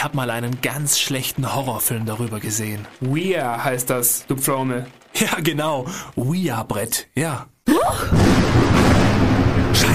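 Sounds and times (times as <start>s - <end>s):
lightning strike on the power line: 0.0s - 6.0s, 8.0s - 9.9s
speech: 0.0s - 8.8s, 9.8s - 9.9s
steady heavy rumbling roar: 8.1s - 9.9s.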